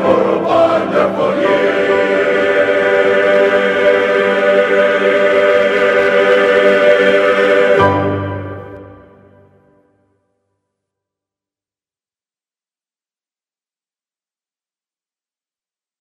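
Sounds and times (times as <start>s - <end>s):
men's glee club singing Christmas music: 0.0s - 8.8s.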